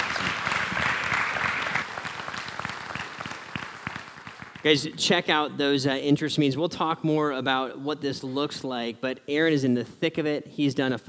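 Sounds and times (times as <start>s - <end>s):
audience applause: 0.0s - 4.8s
speech: 4.6s - 11.0s.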